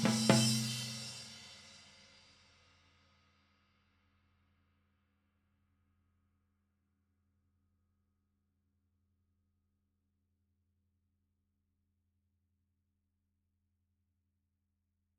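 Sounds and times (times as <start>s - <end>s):
tom drums: 0.0s - 1.4s.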